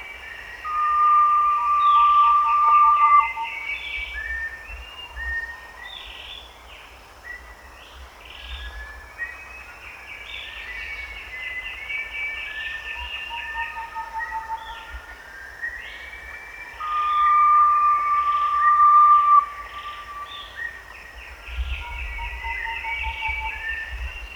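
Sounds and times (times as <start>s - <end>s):
Erythropitta granatina: 0.6s - 3.8s, 16.8s - 20.6s.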